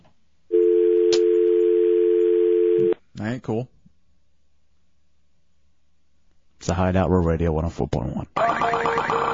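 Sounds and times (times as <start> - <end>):
telephone line dial tone: 0.5 - 3.0
speech: 2.8 - 3.8, 6.6 - 9.2.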